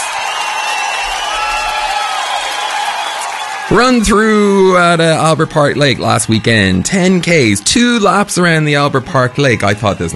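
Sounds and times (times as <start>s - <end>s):
clapping: 0.0s - 3.8s
cheering: 0.0s - 10.1s
speech: 3.7s - 10.1s.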